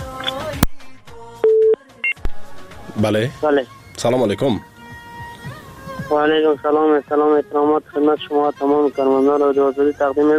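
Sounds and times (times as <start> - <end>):
steady mid-pitched telephone line tone: 1.4 - 2.2
speech: 3.0 - 4.7, 6.1 - 10.3.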